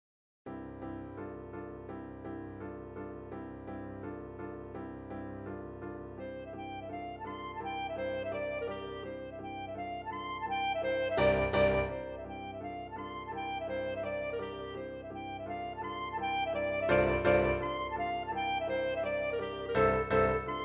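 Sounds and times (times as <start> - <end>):
E flat clarinet: 5.4 - 20.6.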